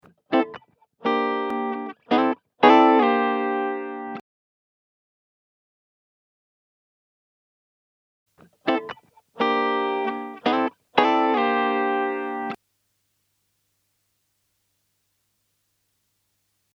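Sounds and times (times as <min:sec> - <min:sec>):
guitar: 0:00.0 - 0:04.2, 0:08.4 - 0:12.6.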